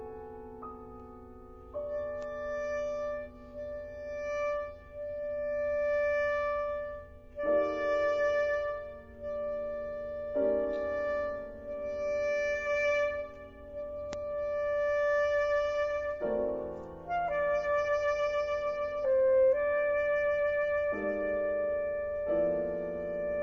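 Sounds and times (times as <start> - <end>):
saxophone sonata: 1.6 - 23.4.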